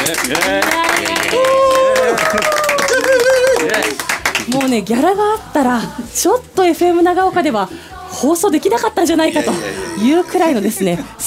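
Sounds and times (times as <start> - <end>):
studio applause: 0.0 - 4.8
speech: 0.1 - 1.4, 4.5 - 11.2.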